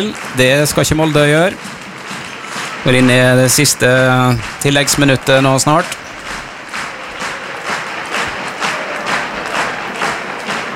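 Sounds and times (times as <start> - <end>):
speech: 0.0 - 1.8, 2.8 - 6.1
large stadium crowd clapping: 0.0 - 10.7.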